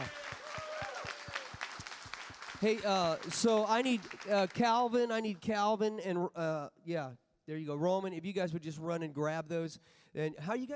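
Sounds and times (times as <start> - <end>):
audience applauding and cheering: 0.0 - 5.1
speech: 2.6 - 10.7.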